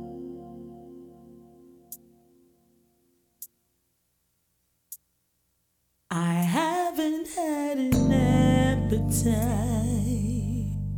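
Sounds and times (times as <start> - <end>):
person singing a gospel vocal: 6.1 - 10.9.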